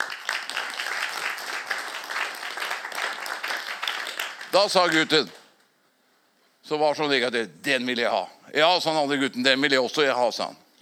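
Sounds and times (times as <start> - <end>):
crowd applause: 0.0 - 4.5
speech: 4.5 - 5.4, 6.7 - 10.6.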